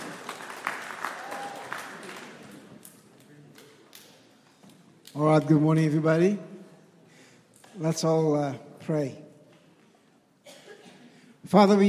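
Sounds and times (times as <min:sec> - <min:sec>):
audience applause: 0:00.0 - 0:02.8
speech: 0:05.2 - 0:06.5, 0:07.8 - 0:09.2, 0:11.5 - 0:11.8.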